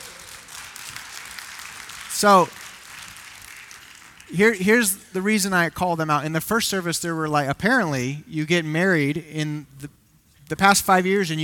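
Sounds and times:
round of applause: 0.0s - 4.3s
speech: 2.2s - 2.6s, 4.3s - 11.4s.

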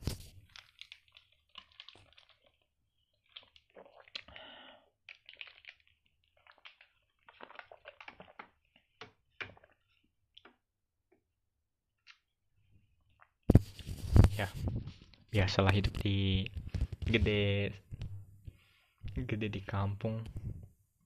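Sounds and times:
plastic mineral water cup crinkling as someone bites it open with teeth: 0.0s - 4.4s, 5.0s - 10.0s
speech: 14.4s - 14.7s, 15.3s - 17.8s, 19.3s - 20.4s.

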